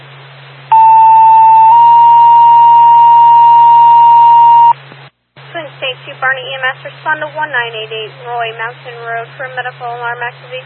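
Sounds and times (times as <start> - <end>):
low radio hum: 0.0 - 10.6
emergency dispatch pager alert tone: 0.7 - 4.8
speech: 6.2 - 10.6.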